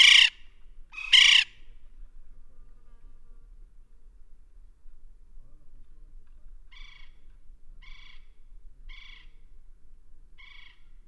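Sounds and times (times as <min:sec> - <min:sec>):
West Indian woodpecker giving loud harsh raspy calls: 0:00.0 - 0:01.6, 0:06.7 - 0:07.2, 0:07.8 - 0:08.3, 0:08.9 - 0:09.4, 0:10.4 - 0:10.9.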